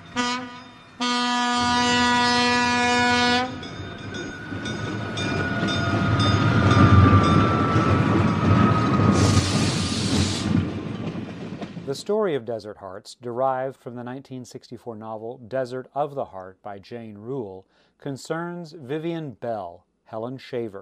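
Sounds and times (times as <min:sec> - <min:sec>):
passenger train multi-tone horn blast: 0:00.0 - 0:03.7
train rolling into station: 0:03.5 - 0:12.1
train brakes hissing: 0:09.1 - 0:10.6
speech: 0:12.0 - 0:20.8.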